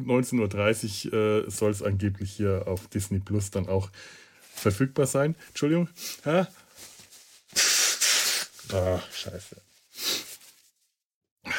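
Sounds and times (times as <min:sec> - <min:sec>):
speech: 0:00.0 - 0:06.9, 0:08.7 - 0:10.2
sniffling: 0:07.5 - 0:10.5
sneezing: 0:07.6 - 0:09.1.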